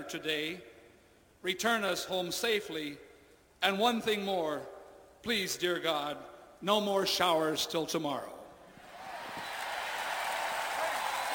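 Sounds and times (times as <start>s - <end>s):
speech: 0.1s - 0.7s, 1.4s - 8.4s
crowd cheering and applauding: 8.8s - 11.3s.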